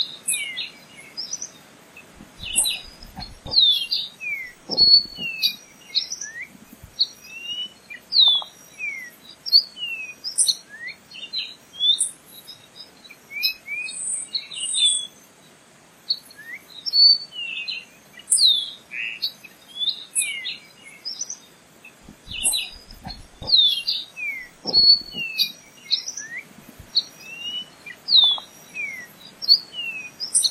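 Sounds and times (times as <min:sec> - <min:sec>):
Rio Negro nightingale singing: 0:00.0 - 0:15.2, 0:16.1 - 0:30.5.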